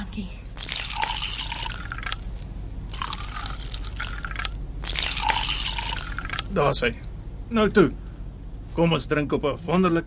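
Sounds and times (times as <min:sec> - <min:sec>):
white wine pouring into a glass: 0:00.6 - 0:02.2, 0:02.9 - 0:06.5
speech: 0:06.6 - 0:08.0, 0:08.8 - 0:10.0.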